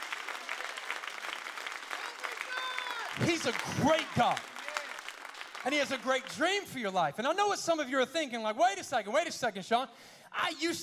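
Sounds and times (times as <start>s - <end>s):
audience clapping: 0.0s - 6.9s
speech: 3.2s - 4.5s, 5.6s - 10.8s.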